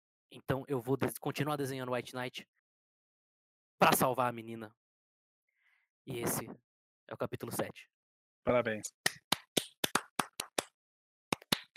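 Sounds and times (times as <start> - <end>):
speech: 0.3 - 2.6, 3.8 - 4.8, 6.0 - 9.2
hand clapping: 8.9 - 11.7.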